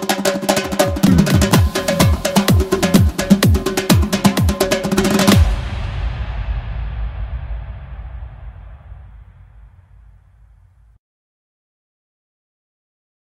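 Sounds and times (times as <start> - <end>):
dhol drum solo: 0.0 - 10.0.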